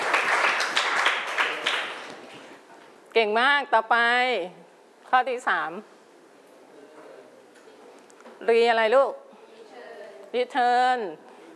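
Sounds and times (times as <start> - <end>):
children in a classroom clapping for classmates: 0.0 - 2.2
speech: 3.2 - 5.9, 8.4 - 9.2, 10.3 - 11.2.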